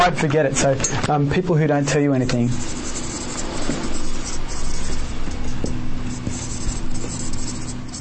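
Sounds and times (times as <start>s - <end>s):
speech: 0.0s - 3.0s
faint steady hum: 0.0s - 7.9s
marker writing on a flip chart during a seminar: 2.6s - 5.1s, 6.1s - 7.9s.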